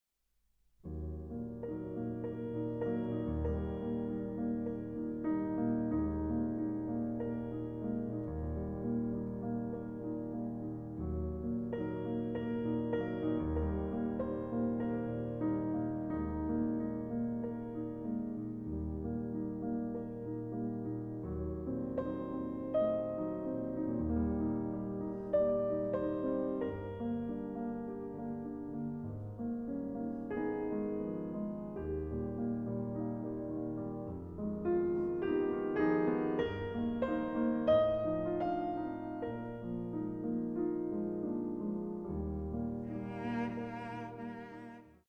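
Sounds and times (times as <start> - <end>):
cello sonata movement in G minor, andante: 0.9 - 45.0.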